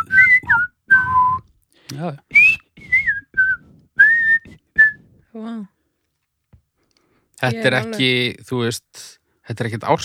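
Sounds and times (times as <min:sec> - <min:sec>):
person whistling a short melody: 0:00.0 - 0:01.5, 0:02.3 - 0:05.2
speech: 0:01.9 - 0:02.6, 0:05.4 - 0:05.7, 0:07.4 - 0:10.0.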